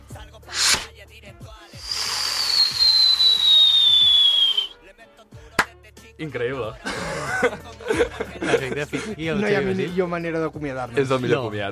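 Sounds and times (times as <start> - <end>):
voice imitating a fireworks display: 0.5 - 0.9, 1.8 - 4.7
speech: 6.2 - 11.7
laughter: 6.8 - 9.7.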